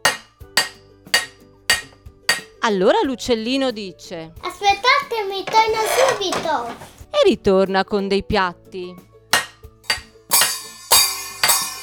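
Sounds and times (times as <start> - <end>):
ladles banging a pot: 0.0 - 2.5, 4.4 - 7.0, 9.4 - 11.8
speech: 2.6 - 9.1.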